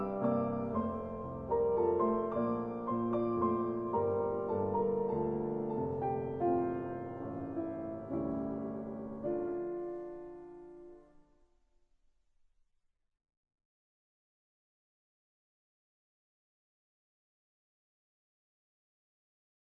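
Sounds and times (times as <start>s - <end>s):
waltz music: 0.0s - 11.1s.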